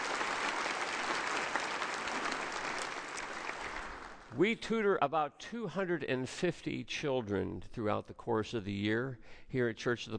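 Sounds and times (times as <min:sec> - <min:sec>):
audience applause: 0:00.0 - 0:04.3
speech: 0:04.4 - 0:10.1.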